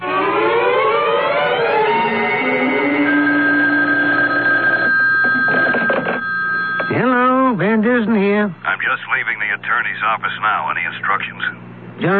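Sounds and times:
telephone ringing tone: 0:00.1 - 0:07.5
telephone dialing tones: 0:03.9 - 0:07.0
speech: 0:08.9 - 0:12.1.

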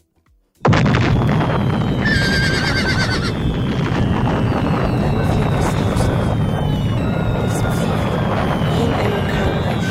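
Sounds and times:
house blown up in a loud explosion: 0:00.6 - 0:09.8
horse whinnying shrilly: 0:02.0 - 0:03.3.

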